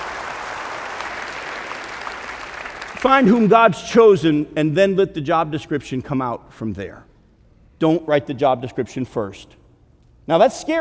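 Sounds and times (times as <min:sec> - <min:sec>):
audience applause: 0:00.0 - 0:03.4
speech: 0:03.0 - 0:07.1, 0:07.8 - 0:09.6, 0:10.3 - 0:10.8.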